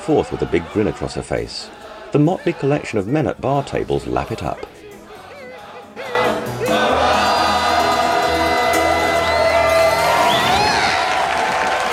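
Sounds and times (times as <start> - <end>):
speech: 0.0 - 4.7
saloon crowd applauding and cheering: 6.1 - 11.9.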